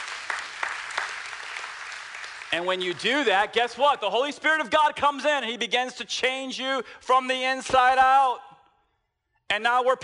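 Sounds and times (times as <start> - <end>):
audience clapping: 0.0 - 3.8
speech: 2.5 - 8.5, 9.5 - 10.0.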